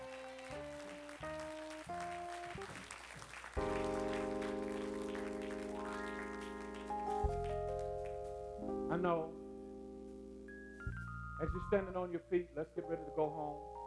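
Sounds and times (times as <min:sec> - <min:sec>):
audience clapping hands: 0:00.0 - 0:08.3
speech: 0:09.0 - 0:09.4, 0:11.4 - 0:13.7.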